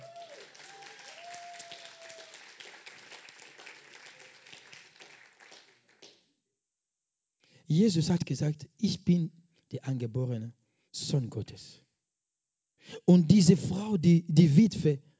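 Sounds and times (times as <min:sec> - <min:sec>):
whistles and cheers: 0:00.0 - 0:05.6
crowd applause: 0:00.0 - 0:06.1
speech: 0:07.7 - 0:11.8, 0:13.1 - 0:15.1.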